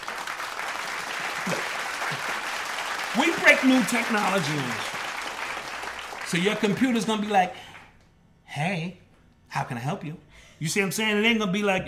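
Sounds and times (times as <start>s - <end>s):
audience clapping: 0.0s - 8.0s
speech: 3.2s - 5.0s, 6.3s - 7.6s, 8.6s - 11.8s.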